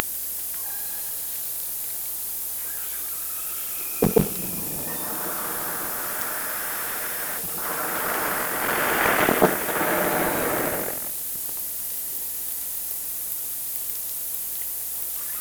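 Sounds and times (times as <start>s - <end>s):
orca sounds passing by at night: 2.6s - 11.1s.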